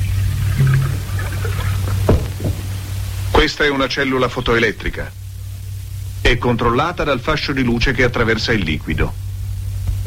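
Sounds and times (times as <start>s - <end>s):
starch being poured into a solution in a chemistry experiment: 0.0s - 2.9s
steady low electrical hum: 0.0s - 10.0s
brief thunk: 2.1s - 2.7s
speech: 3.4s - 5.2s, 6.2s - 9.2s.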